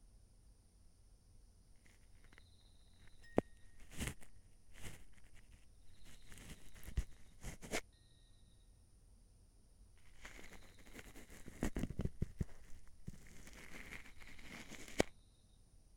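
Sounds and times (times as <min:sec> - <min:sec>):
ASMR ear cleaning of the right ear: 0:01.8 - 0:07.8, 0:10.0 - 0:15.2.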